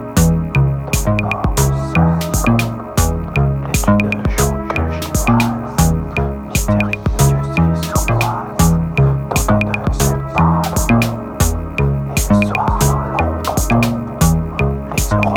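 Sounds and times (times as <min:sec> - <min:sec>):
French synthwave music: 0:00.0 - 0:15.3.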